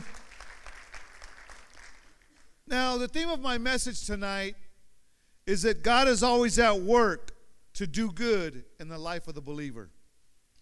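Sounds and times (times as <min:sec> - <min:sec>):
audience clapping: 0:00.0 - 0:02.5
speech: 0:02.7 - 0:04.6, 0:05.5 - 0:10.0.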